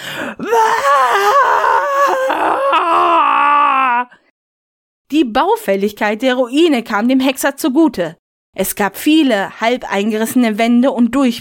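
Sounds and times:
voice imitating an ogre's animal-like roar: 0:00.4 - 0:04.2
speech: 0:05.3 - 0:11.3.

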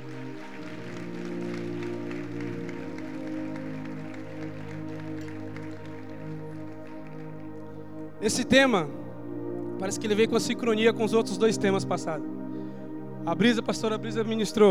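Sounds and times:
audience applause: 0:00.0 - 0:07.9
sustained low keyboard chords: 0:00.0 - 0:14.6
speech: 0:08.2 - 0:09.0, 0:09.8 - 0:12.4, 0:13.2 - 0:14.6.

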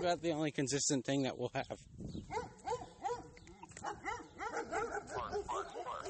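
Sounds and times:
speech: 0:00.0 - 0:02.5
dogs barking: 0:02.3 - 0:06.0.

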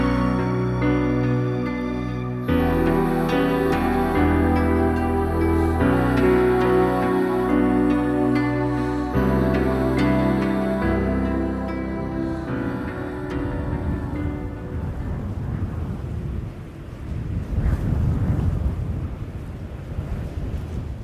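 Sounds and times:
sustained tonal drone: 0:00.0 - 0:16.0
strong wind howling over the plains: 0:00.0 - 0:21.0.

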